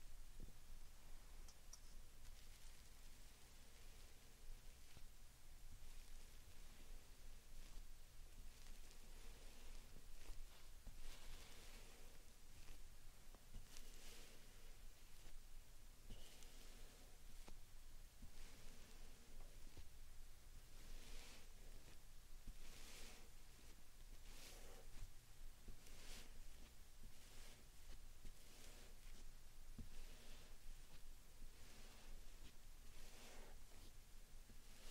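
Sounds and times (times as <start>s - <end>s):
constant faint hiss: 0.0s - 34.8s
slime sand being squished and pressed: 5.8s - 20.0s, 20.6s - 34.8s.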